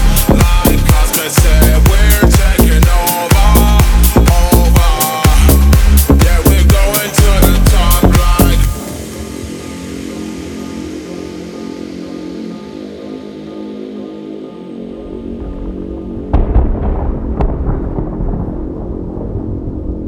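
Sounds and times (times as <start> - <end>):
loud club bass on front car audio: 0.0 - 8.9, 15.0 - 20.0.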